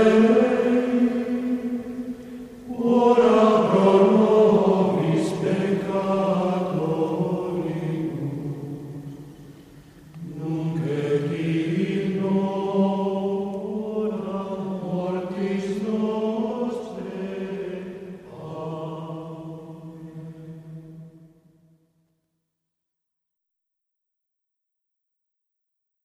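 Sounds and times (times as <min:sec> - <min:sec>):
male choir Gregorian chant: 0:00.0 - 0:09.0, 0:10.2 - 0:21.1.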